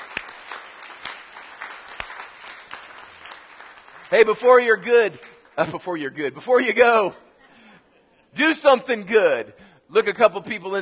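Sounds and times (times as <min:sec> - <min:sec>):
audience applauding: 0:00.0 - 0:05.9
speech: 0:04.1 - 0:07.2, 0:08.4 - 0:10.8.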